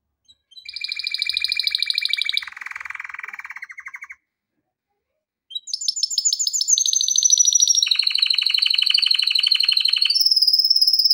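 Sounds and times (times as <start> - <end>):
canary trilling song: 0.3 - 4.2, 5.5 - 11.1.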